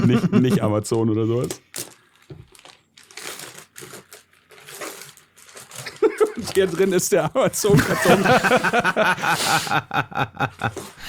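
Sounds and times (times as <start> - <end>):
laughter: 0.0 - 0.7, 5.8 - 11.0
speech: 0.1 - 1.9, 6.4 - 11.0
children's gift wrapping paper crinkling and tearing as a present is unwrapped: 1.4 - 9.6.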